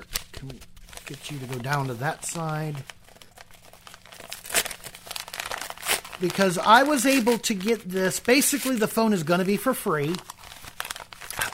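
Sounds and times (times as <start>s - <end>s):
envelope: 0.0s - 9.0s, 9.6s - 11.5s
speech: 0.4s - 3.0s, 6.2s - 10.3s.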